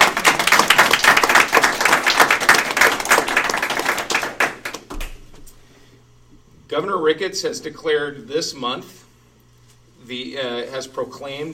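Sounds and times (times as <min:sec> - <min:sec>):
crowd applauding: 0:00.0 - 0:05.2
speech: 0:06.8 - 0:09.0, 0:10.1 - 0:11.5.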